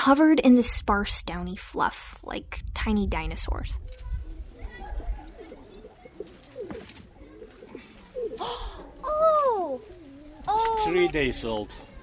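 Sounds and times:
speech: 0:00.0 - 0:04.0, 0:08.4 - 0:09.9, 0:10.5 - 0:12.0
pigeons cooing: 0:03.9 - 0:12.0.

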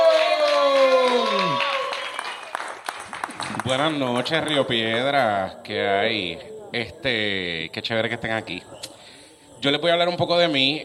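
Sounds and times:
audience cheering: 0:00.0 - 0:03.9
audience applause: 0:00.0 - 0:05.1
speech: 0:03.7 - 0:08.8, 0:09.6 - 0:10.8.

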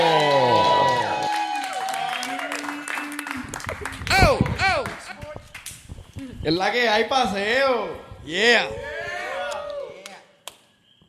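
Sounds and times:
cheers and whoops: 0:00.0 - 0:04.8, 0:08.7 - 0:10.2
crowd applause: 0:00.0 - 0:05.4
speech: 0:06.4 - 0:08.9.

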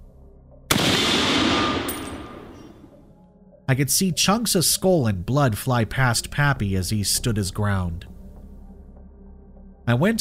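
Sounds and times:
gunshot sound effect in a horror story: 0:00.7 - 0:02.9
speech: 0:03.7 - 0:08.1, 0:09.9 - 0:10.1.

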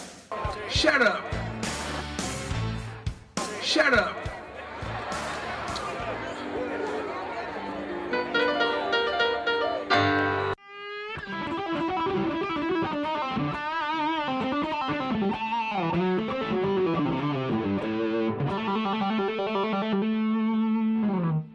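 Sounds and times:
laughter: 0:00.4 - 0:02.2, 0:03.5 - 0:09.2
speech: 0:00.8 - 0:01.3, 0:03.8 - 0:04.2
electric guitar with heavy effects playing the A blues scale: 0:05.7 - 0:21.5.

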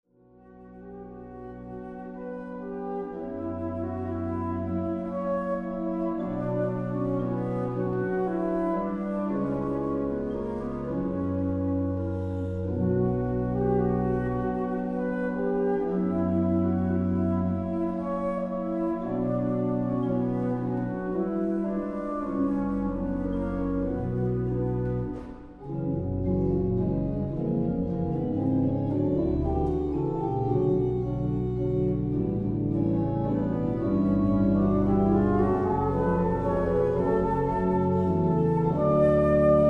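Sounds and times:
nocturne for alto flute and organ: 0:00.2 - 0:39.6.

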